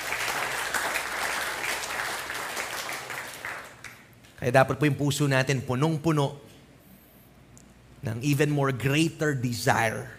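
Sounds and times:
church congregation applause during a Christmas-season worship service: 0.0s - 4.1s
speech: 4.4s - 6.5s, 8.0s - 10.1s.

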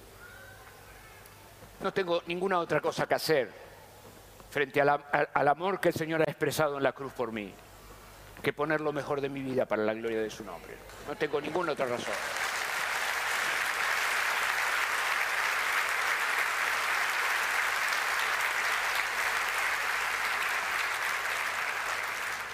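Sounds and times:
speech: 1.8s - 3.6s, 4.5s - 7.6s, 8.4s - 12.4s
audience applause: 11.1s - 22.5s.

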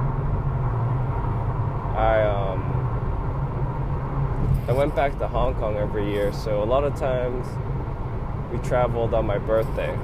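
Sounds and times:
car vibrating heavily while driving: 0.0s - 10.0s
speech: 4.7s - 7.7s, 8.5s - 10.0s.

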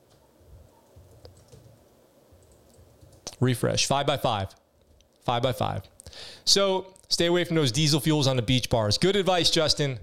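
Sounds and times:
typing a comment on a computer keyboard: 0.0s - 3.4s
low hum: 0.0s - 10.0s
speech: 3.4s - 4.6s, 5.3s - 10.0s.

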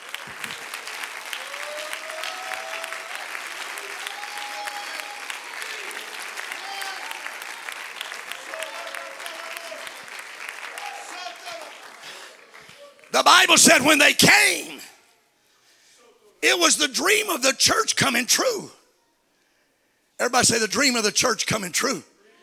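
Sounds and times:
audience clapping: 0.0s - 14.0s
speech: 13.2s - 14.7s, 16.8s - 18.8s, 20.2s - 22.1s.

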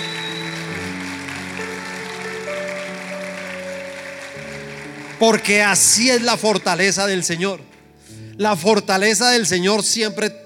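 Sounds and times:
audience applauding loudly: 0.0s - 7.4s
speech: 5.2s - 7.8s, 8.4s - 10.4s.

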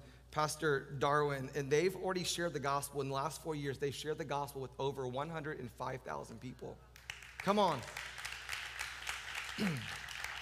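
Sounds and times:
speech: 0.4s - 8.2s, 9.6s - 10.0s
audience clapping: 7.0s - 10.4s.

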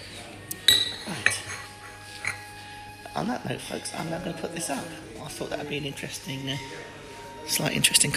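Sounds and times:
teacups and cutlery clinking: 0.0s - 2.6s
speech: 3.2s - 8.1s.

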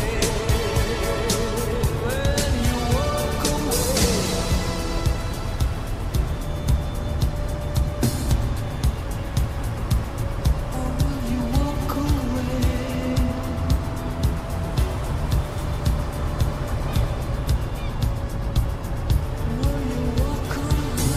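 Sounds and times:
faint wavering tones: 0.0s - 21.1s
low rumble of vehicle in motion: 0.0s - 21.1s.

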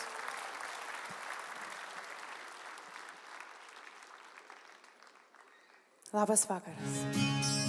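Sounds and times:
audience applause welcoming a singer onto the stage at a live show: 0.0s - 6.0s
speech: 6.1s - 7.6s.

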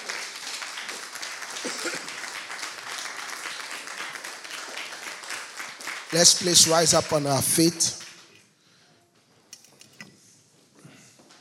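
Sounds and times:
audience hand clapping applause: 0.0s - 8.4s
speech: 6.1s - 8.0s.

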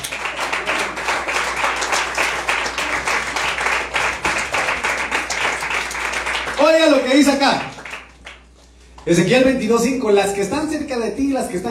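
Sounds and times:
crowd applauding: 0.0s - 8.5s
speech: 6.7s - 7.7s, 9.0s - 11.6s.

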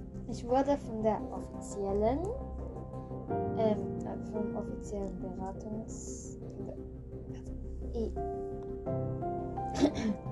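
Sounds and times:
humming tonal background: 0.0s - 10.3s
speech: 0.3s - 2.5s, 3.3s - 9.0s, 9.8s - 10.3s
person coughing: 9.8s - 10.3s.

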